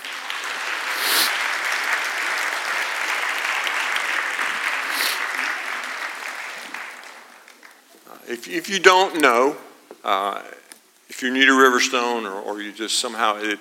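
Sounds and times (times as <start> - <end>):
audience applause: 0.0 - 8.0
speech: 8.3 - 10.6, 11.2 - 13.5.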